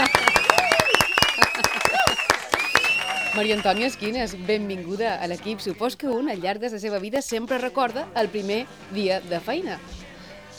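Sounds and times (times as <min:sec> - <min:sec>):
applause: 0:00.0 - 0:04.1
laughter: 0:00.0 - 0:10.5
speech: 0:03.4 - 0:10.0.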